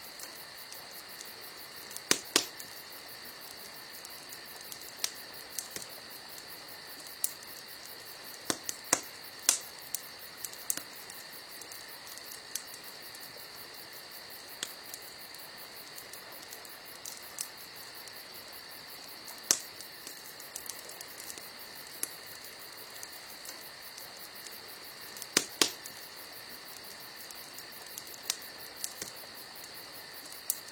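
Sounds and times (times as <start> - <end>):
burning firewood hiss: 0.0 - 30.7.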